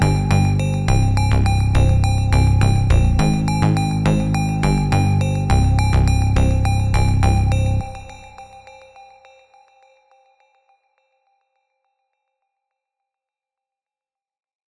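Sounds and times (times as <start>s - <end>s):
slowed reverb music: 0.0s - 8.7s.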